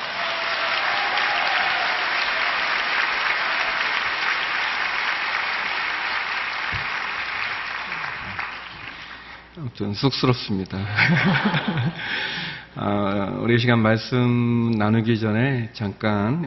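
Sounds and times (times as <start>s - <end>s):
audience applause welcoming pastor: 0.0s - 9.4s
speech: 9.7s - 16.4s
laughter: 10.9s - 12.1s.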